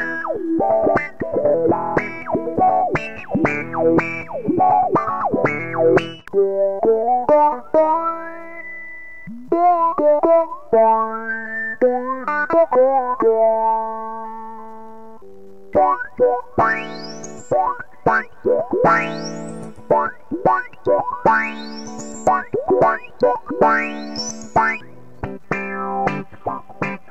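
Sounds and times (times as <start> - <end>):
guitar with auto-wah: 0.0 - 27.0.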